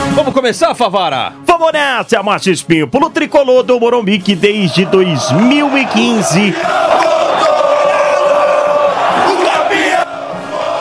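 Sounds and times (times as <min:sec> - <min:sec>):
speech: 0:00.2 - 0:07.2
large stadium crowd of football fans roaring and chanting: 0:04.5 - 0:10.7.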